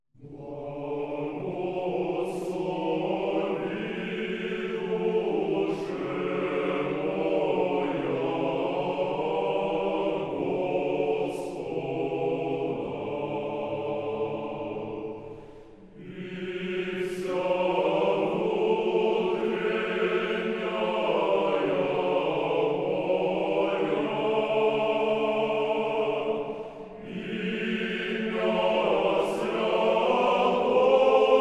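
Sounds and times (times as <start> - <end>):
ancient Russian choir chanting: 0.2 - 31.3.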